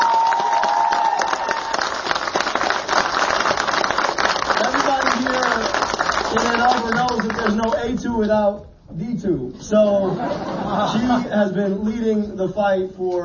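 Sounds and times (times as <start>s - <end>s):
crowd applause at a political rally: 0.0s - 7.8s
speech: 7.5s - 13.2s
laughter: 9.9s - 11.7s.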